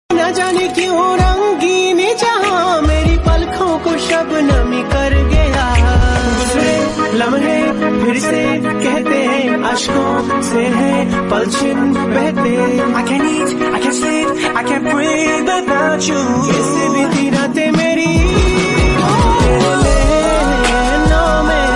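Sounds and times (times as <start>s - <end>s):
Hindi love song ringtone: 0.1s - 21.7s.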